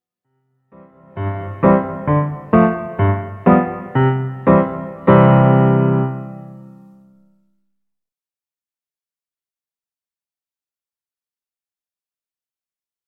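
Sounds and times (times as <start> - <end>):
Bohemian polka music: 1.0 - 6.8.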